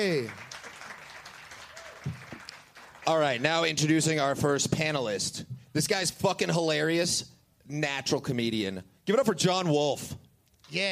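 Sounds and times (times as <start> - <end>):
speech: 0.0 - 0.5, 3.1 - 10.9
audience applause at a comedy show: 0.0 - 3.6.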